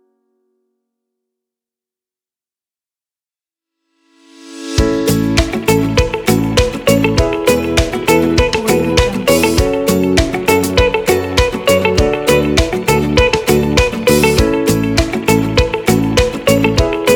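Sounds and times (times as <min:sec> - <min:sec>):
happy brand logo music: 0:04.8 - 0:17.1.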